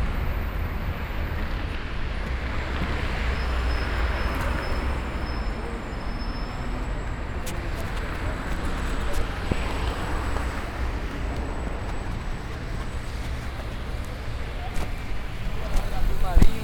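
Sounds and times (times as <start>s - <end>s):
street ambience in Brazil: 0.0s - 16.6s.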